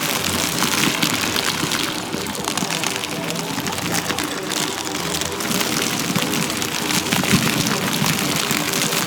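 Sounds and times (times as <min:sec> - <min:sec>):
frost snow globe music loop: 0:00.0 - 0:09.0.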